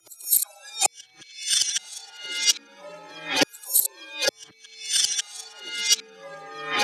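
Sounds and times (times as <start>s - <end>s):
percussion: 0.0s - 2.6s, 3.4s - 6.0s.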